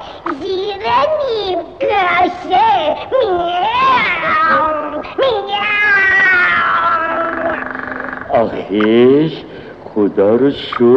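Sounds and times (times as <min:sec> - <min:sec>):
speech: 0:00.2 - 0:04.7, 0:08.3 - 0:10.9
cat meowing: 0:03.8 - 0:08.5.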